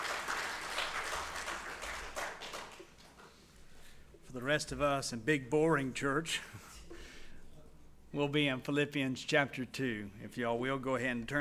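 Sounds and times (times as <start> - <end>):
audience applauding: 0.0 - 3.3
speech: 4.4 - 6.7, 8.1 - 11.4.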